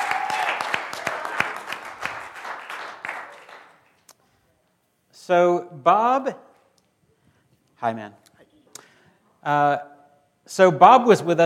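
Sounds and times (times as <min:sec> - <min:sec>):
church congregation clapping to welcome a guest: 0:00.0 - 0:04.2
speech: 0:05.3 - 0:06.5, 0:07.8 - 0:08.3, 0:09.4 - 0:09.9, 0:10.5 - 0:11.4.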